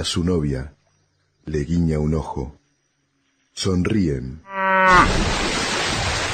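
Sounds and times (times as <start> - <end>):
speech: 0.0 - 0.8, 1.4 - 2.6, 3.6 - 5.5
cow mooing: 4.4 - 5.2.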